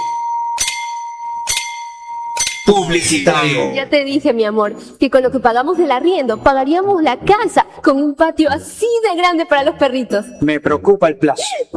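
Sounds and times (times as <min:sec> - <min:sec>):
radio time signal ringing chime strikes: 0:00.0 - 0:03.7
radio time signal steady mid-pitched tone: 0:00.0 - 0:04.0
speech: 0:02.7 - 0:11.7.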